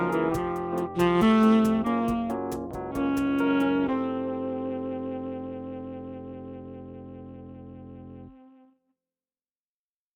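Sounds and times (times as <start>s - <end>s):
drums: 0.0s - 3.7s
Rhodes electric piano: 0.0s - 8.6s
Yamaha YDS-120 digital tenor saxophone: 0.0s - 8.8s.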